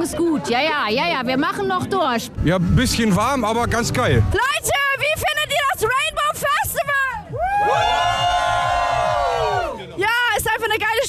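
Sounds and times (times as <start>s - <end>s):
speech: 0.0s - 5.3s
festival crowd cheering and shouting: 4.0s - 10.1s.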